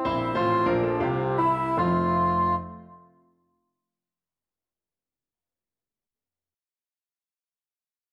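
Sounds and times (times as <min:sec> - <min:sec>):
bassoon playing a galliard sonata: 0:00.0 - 0:03.1.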